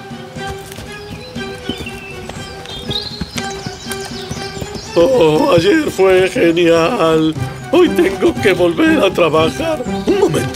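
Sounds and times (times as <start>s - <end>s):
donkey hooves clopping while carrying sacks of salt to market: 0.0s - 10.5s
speech: 5.0s - 10.5s.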